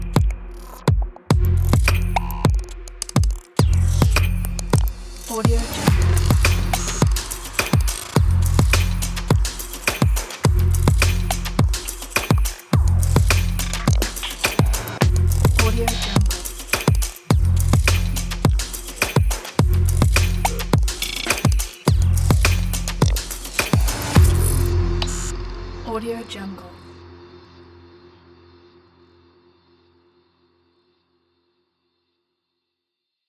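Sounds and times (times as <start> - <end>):
dark abstract glitch: 0.0 - 18.6, 19.6 - 27.0.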